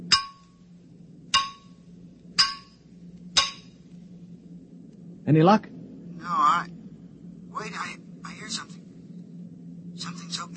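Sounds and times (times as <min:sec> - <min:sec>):
banging on metal: 0:00.0 - 0:00.5, 0:01.3 - 0:01.8, 0:02.4 - 0:02.8, 0:03.4 - 0:03.7
low steady hum: 0:00.0 - 0:10.5
speech: 0:05.3 - 0:05.8.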